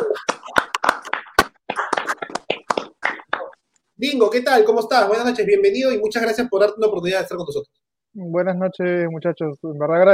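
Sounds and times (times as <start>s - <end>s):
applause for a guest: 0.0s - 3.6s
speech: 4.0s - 10.1s.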